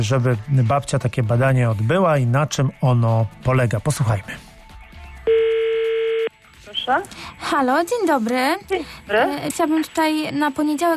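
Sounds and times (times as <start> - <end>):
speech: 0.0 - 4.5, 6.9 - 10.9
telephone tone as a call is placed to a clinic's registration number: 5.3 - 6.3.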